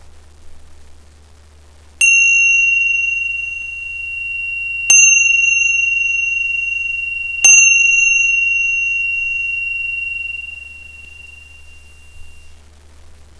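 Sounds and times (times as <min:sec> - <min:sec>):
chimes: 0:02.0 - 0:12.5.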